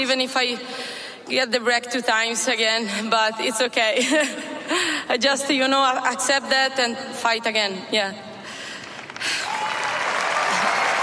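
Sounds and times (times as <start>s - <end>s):
speech: 0.0s - 8.3s
tennis crowd applauding and cheering: 9.0s - 11.0s.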